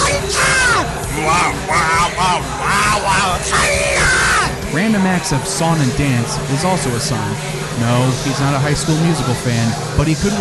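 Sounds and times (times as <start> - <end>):
loud strained yelling: 0.0 - 4.6
speech: 5.0 - 10.4.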